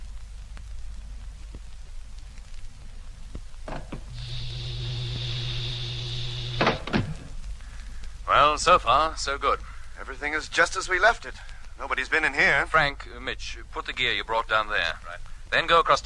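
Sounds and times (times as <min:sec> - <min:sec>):
constant hissing background: 0:00.0 - 0:16.0
steady two-toned electric hum and whine: 0:03.6 - 0:08.5
ship's main door opening with a sharp clunk: 0:03.7 - 0:07.4
speech: 0:08.3 - 0:16.0.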